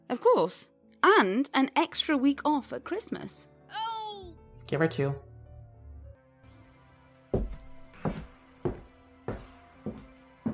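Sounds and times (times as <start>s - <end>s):
speech: 0.1s - 3.9s, 4.7s - 5.3s
slow heavy footsteps: 7.4s - 10.5s.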